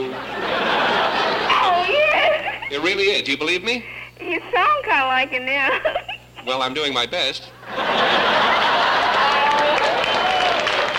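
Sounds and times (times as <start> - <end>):
laughter: 0.0 - 3.0, 5.7 - 6.4, 7.6 - 10.5
speech: 2.8 - 8.8
people applauding: 8.5 - 10.9.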